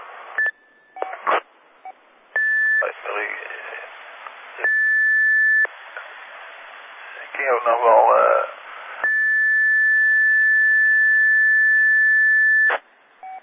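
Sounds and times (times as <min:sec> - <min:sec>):
radio courtesy tone beep: 0:02.4 - 0:03.0, 0:04.6 - 0:05.7, 0:09.0 - 0:13.4
speech: 0:07.6 - 0:08.2.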